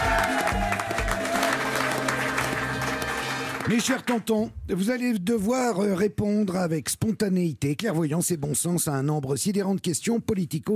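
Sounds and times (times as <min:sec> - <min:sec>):
audience applause: 0:00.0 - 0:04.2
speech: 0:03.7 - 0:10.7.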